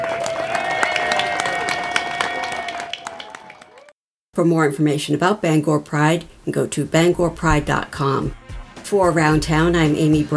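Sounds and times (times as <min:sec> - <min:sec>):
audience round of applause: 0:00.0 - 0:04.0
speech: 0:04.4 - 0:10.3.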